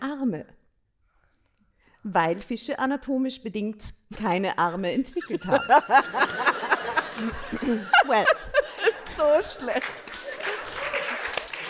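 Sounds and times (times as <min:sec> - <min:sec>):
speech: 0:00.2 - 0:00.6, 0:02.0 - 0:08.5, 0:09.2 - 0:10.0
laughter: 0:05.2 - 0:11.6
applause: 0:09.0 - 0:11.6.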